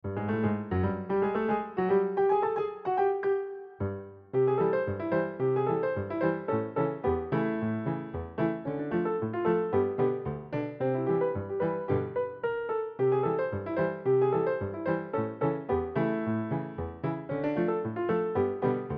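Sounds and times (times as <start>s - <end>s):
ragtime music: 0.2s - 3.8s, 4.4s - 18.9s.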